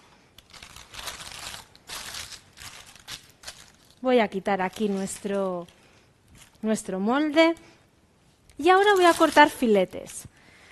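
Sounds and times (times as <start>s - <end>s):
paper crinkling as it is peeled off food on a round plate: 0.4s - 6.6s, 8.6s - 10.2s
speech: 4.0s - 5.8s, 6.6s - 7.7s, 8.6s - 10.2s.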